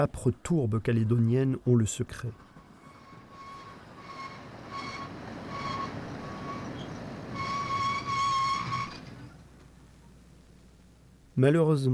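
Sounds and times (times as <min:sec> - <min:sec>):
speech: 0:00.0 - 0:02.5, 0:11.4 - 0:11.9
train braking abruptly to a stop: 0:02.4 - 0:10.2.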